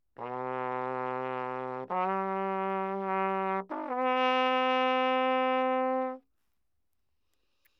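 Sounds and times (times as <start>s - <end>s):
natural baroque trumpet playing low in anechoic room: 0.2s - 6.2s.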